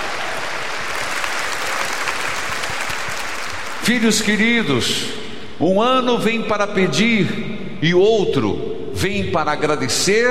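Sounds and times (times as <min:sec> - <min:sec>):
audience applause: 0:00.0 - 0:04.3
speech: 0:03.9 - 0:10.2.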